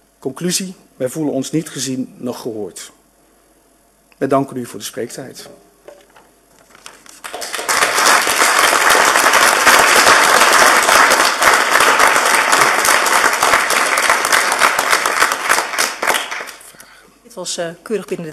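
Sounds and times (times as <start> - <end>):
speech: 0.2 - 3.0, 4.2 - 5.7, 17.4 - 18.3
audience applause: 7.2 - 16.7.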